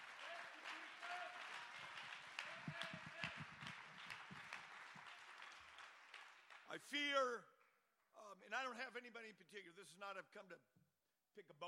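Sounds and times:
raised voices and cheers: 0:00.0 - 0:03.8
audience clapping hands in praise: 0:00.0 - 0:07.7
speech: 0:06.8 - 0:07.5, 0:08.3 - 0:10.7, 0:11.4 - 0:11.6.

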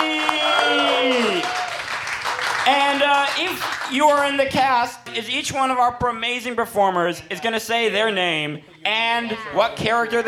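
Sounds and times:
person whooping: 0:00.0 - 0:01.8
round of applause: 0:00.0 - 0:03.9
speech: 0:02.6 - 0:10.2.

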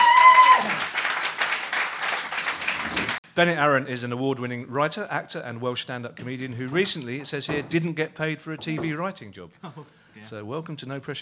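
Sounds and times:
studio audience applauding as comedy panel walks on: 0:00.0 - 0:03.2
speech: 0:03.4 - 0:11.2.

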